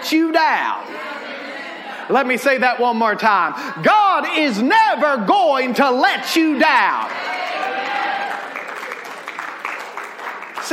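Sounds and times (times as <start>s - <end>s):
speech: 0.1s - 1.2s, 2.1s - 7.4s
audience clapping: 6.8s - 10.7s.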